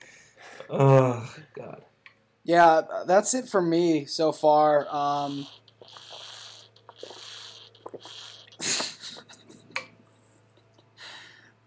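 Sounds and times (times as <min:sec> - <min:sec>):
speech: 0:00.7 - 0:06.0
small mouth noises: 0:04.8 - 0:09.5
loud wet slurp: 0:05.2 - 0:09.3.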